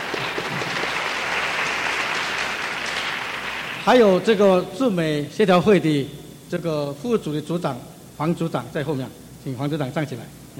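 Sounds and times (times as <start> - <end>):
audience applause: 0.0 - 4.0
speech: 3.9 - 10.5.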